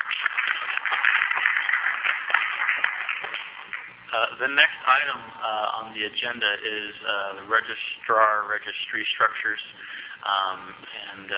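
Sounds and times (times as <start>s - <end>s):
audience round of applause: 0.0s - 4.0s
speech: 4.1s - 11.3s.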